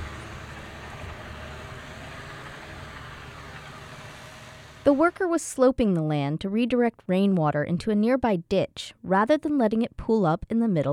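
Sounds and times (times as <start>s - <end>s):
bulldozer driving across the dirt of a strawberry field: 0.0s - 5.2s
speech: 4.9s - 10.9s.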